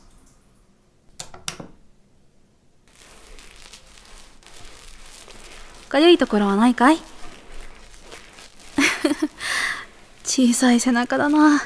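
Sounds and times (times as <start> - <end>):
lathering body soap into foam: 2.9 - 11.6
speech: 5.9 - 7.1, 10.4 - 11.6.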